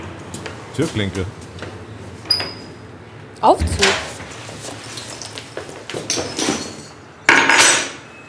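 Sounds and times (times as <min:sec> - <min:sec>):
speech: 0:00.8 - 0:01.4, 0:03.4 - 0:04.0
keys set down on a table: 0:04.6 - 0:08.0.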